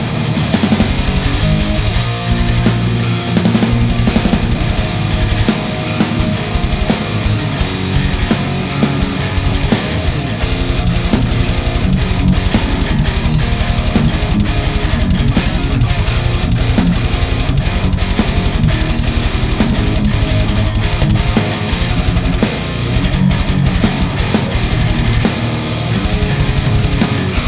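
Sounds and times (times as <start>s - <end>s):
electric guitar through a tube amplifier at low volume: 0.0s - 27.4s.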